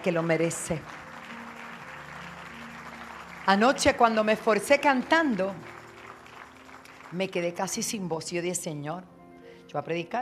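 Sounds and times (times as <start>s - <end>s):
speech: 0.0s - 1.0s, 3.5s - 5.7s, 7.1s - 9.1s, 9.7s - 10.2s
audience applauding: 0.0s - 7.8s.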